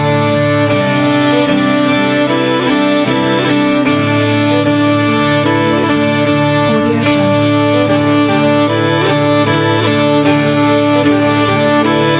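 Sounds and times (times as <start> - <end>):
country violin song: 0.0 - 12.1.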